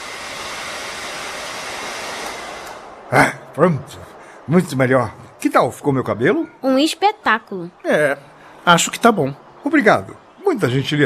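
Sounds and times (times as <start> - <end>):
hair dryer running: 0.0 - 3.1
speech: 3.1 - 11.0.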